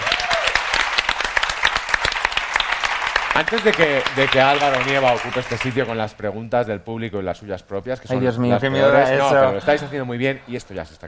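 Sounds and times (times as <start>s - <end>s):
audience applause: 0.0s - 6.0s
speech: 3.4s - 11.0s.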